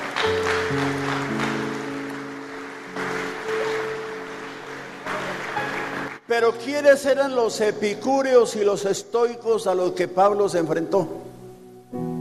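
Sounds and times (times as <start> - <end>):
audience applause: 0.0 - 6.4
sustained keyboard chords: 0.0 - 8.3, 10.8 - 12.1
speech: 6.3 - 11.3.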